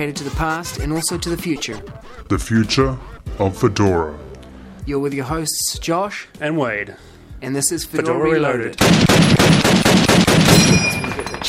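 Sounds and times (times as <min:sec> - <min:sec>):
speech: 0:00.0 - 0:09.4
gold-plated Uzi submachine gun fire: 0:08.8 - 0:11.4.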